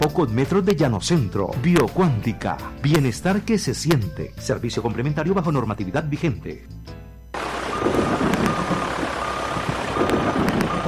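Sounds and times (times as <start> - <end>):
speech: 0.1 - 6.8, 7.8 - 8.2
loud steady heavy machinery engine rumble: 7.3 - 10.8
heavy machinery reversing beeps: 7.7 - 10.8.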